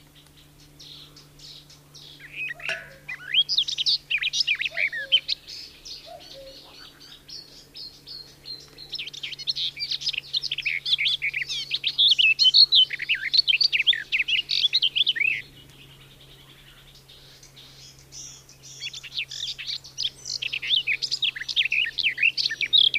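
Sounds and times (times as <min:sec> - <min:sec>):
garden warbler song: 0:00.0 - 0:22.9.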